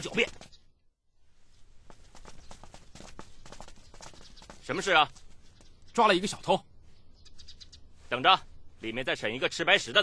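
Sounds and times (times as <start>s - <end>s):
speech: 0.0s - 0.4s, 4.7s - 5.2s, 6.0s - 6.7s, 8.1s - 10.0s
hurried footsteps of people walking quickly: 0.0s - 0.6s, 1.4s - 6.6s.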